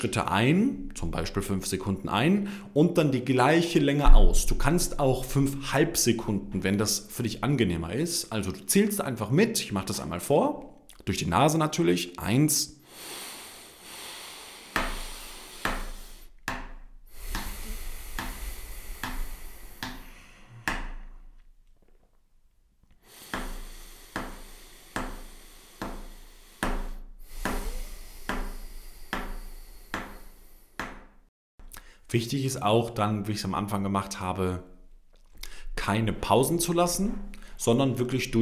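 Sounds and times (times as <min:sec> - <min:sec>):
speech: 0:00.0 - 0:13.2, 0:32.1 - 0:34.7, 0:35.9 - 0:38.3
pen tapping along to counted breathing: 0:14.8 - 0:20.1, 0:23.3 - 0:31.1.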